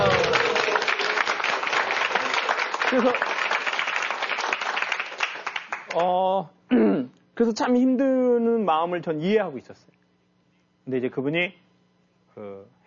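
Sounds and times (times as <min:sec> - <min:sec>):
crowd applauding: 0:00.0 - 0:06.1
speech: 0:02.9 - 0:03.4, 0:06.0 - 0:10.0, 0:10.9 - 0:11.6, 0:12.4 - 0:12.8.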